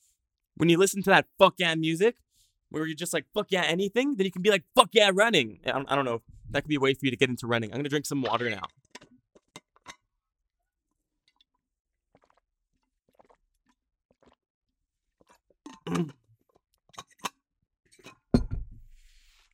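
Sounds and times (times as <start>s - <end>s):
speech: 0.6s - 8.9s, 15.9s - 16.2s
chewing crunchy breakfast cereal: 11.2s - 14.5s, 15.1s - 17.2s.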